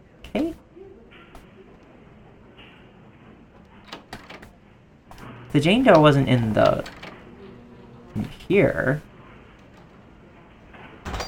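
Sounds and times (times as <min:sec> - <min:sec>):
low steady hum: 0:00.0 - 0:11.2
video game door opening noise burst: 0:03.7 - 0:08.5
speech: 0:05.5 - 0:07.0, 0:08.2 - 0:09.1.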